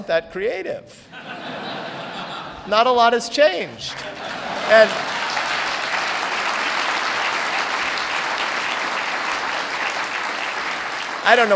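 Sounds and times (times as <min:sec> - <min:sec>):
speech: 0:00.0 - 0:01.6, 0:02.6 - 0:05.2, 0:11.2 - 0:11.5
laughter: 0:01.1 - 0:02.9, 0:03.7 - 0:08.4
audience applause at the Mayflower Hotel in Washington: 0:03.9 - 0:11.5.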